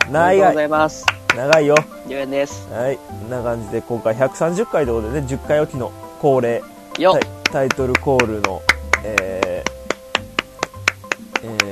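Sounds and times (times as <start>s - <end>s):
hand claps: 0.0s - 0.2s, 1.0s - 2.0s, 6.9s - 11.6s
tonal music: 0.0s - 11.6s
speech: 0.1s - 9.4s.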